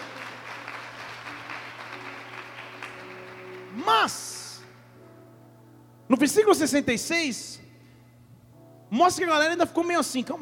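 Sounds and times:
audience applause: 0.0 - 3.8
speech: 3.8 - 4.4, 6.1 - 7.6, 8.9 - 10.4.

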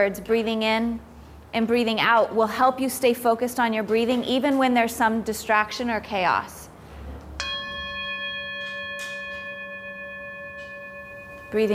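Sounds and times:
speech: 0.0 - 6.7, 11.5 - 11.7
bell rung by teacher: 7.4 - 11.7.

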